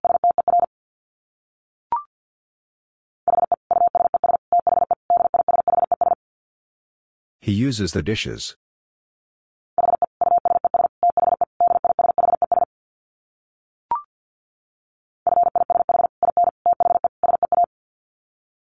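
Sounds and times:
rapid Morse code tones at 50 wpm: 0.0 - 0.7, 3.3 - 6.2, 9.8 - 12.7, 15.3 - 17.7
speech: 7.4 - 8.6.

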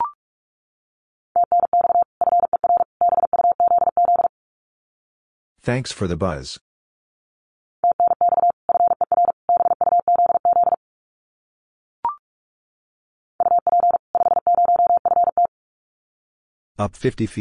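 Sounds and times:
Morse code at 45 words per minute: 1.4 - 4.3, 7.8 - 10.8, 13.4 - 15.5
speech: 5.6 - 6.7, 16.8 - 17.4.

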